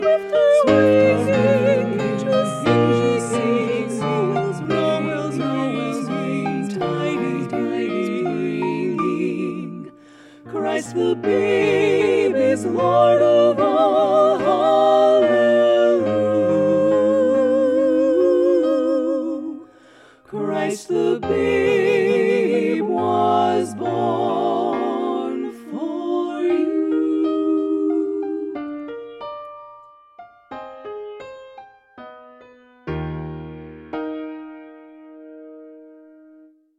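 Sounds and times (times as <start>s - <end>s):
SATB choir singing: 0.0s - 28.8s.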